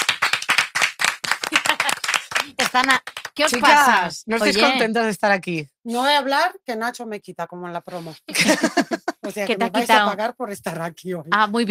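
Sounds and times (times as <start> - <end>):
audience applause: 0.0 - 3.9
laughter: 1.5 - 2.6, 8.2 - 10.1
speech: 2.4 - 11.7.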